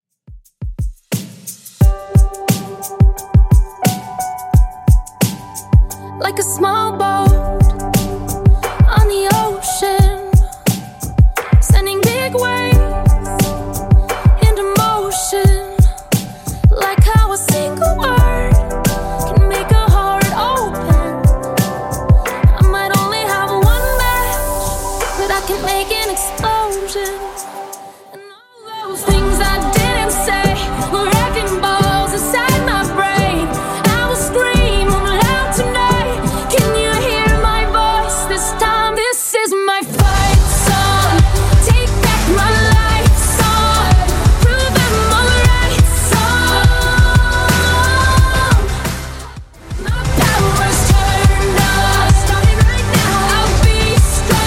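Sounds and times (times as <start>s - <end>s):
Top40 pop music at 88bpm: 1.1s - 54.4s.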